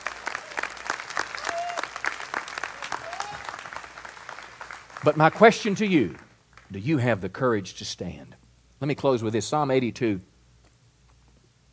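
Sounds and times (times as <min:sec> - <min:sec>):
audience applause: 0:00.0 - 0:06.8
whistles and cheers: 0:00.1 - 0:03.9
speech: 0:05.0 - 0:10.3.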